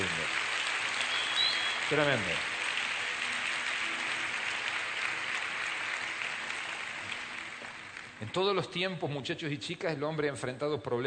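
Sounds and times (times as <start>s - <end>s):
audience applause: 0.0s - 8.6s
speech: 1.9s - 2.5s, 8.2s - 11.0s.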